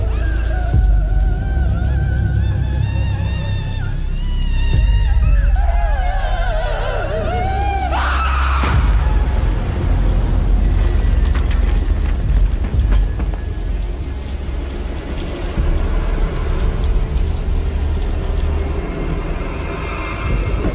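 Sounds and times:
heavy rain: 0.0 - 20.7
rolling thunder: 8.6 - 20.7.

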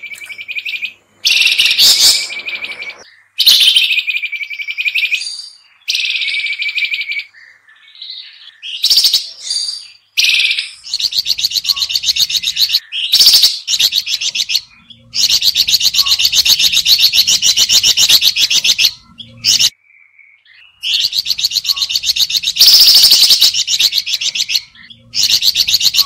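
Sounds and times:
sooty-headed bulbul calling: 0.0 - 19.8, 20.4 - 26.0.

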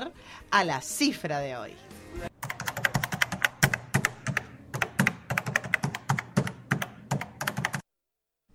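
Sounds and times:
speech: 0.0 - 2.3
typing on computer keyboard: 2.4 - 7.8.

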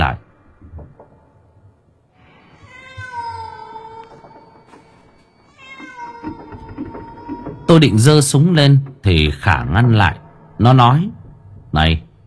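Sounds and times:
cats meowing and caterwauling: 2.3 - 8.4
speech: 7.7 - 12.1.

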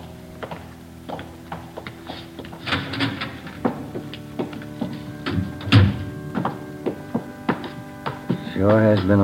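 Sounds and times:
footsteps climbing stairs to a choir loft: 0.0 - 9.2
door opening: 2.3 - 8.4
speech: 8.6 - 9.2.

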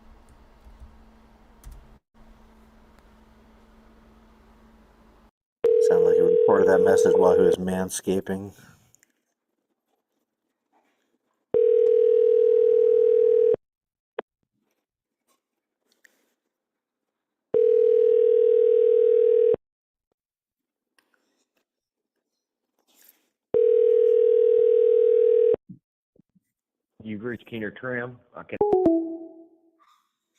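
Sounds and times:
telephone ringback tone: 5.6 - 7.6, 11.6 - 13.6, 17.6 - 19.6, 23.6 - 25.6
speech: 6.5 - 8.7, 27.5 - 29.0.

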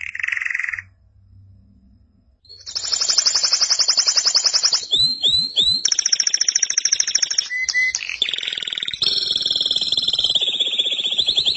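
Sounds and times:
canary trilling: 2.5 - 11.5.

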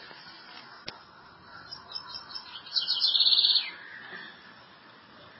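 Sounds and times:
southern house wren singing: 1.2 - 4.6.

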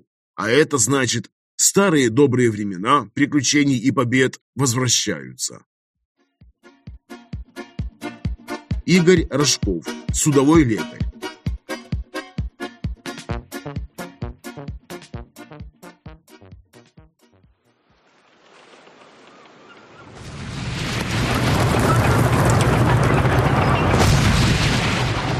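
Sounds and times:
speech: 0.4 - 5.7, 8.9 - 11.2
volley of cannon fire amid gunpowder smoke: 20.2 - 25.3.

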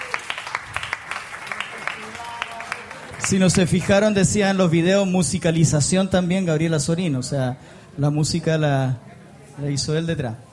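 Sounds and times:
audience applause at a church evangelism planning meeting: 0.0 - 4.4
speech: 3.2 - 10.5.

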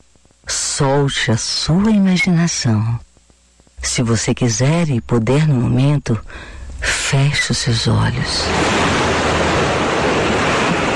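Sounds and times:
speech: 0.8 - 3.1, 3.8 - 8.8
ocean waves breaking on a beach: 8.4 - 10.9.

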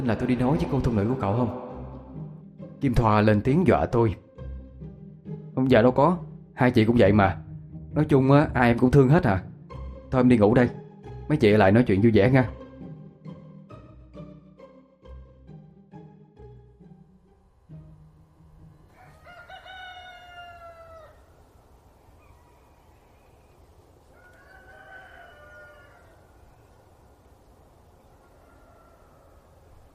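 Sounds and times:
speech: 0.0 - 1.6, 2.8 - 4.2, 5.6 - 9.5, 10.1 - 12.6
jungle fowl crowing in the morning: 18.7 - 29.9.

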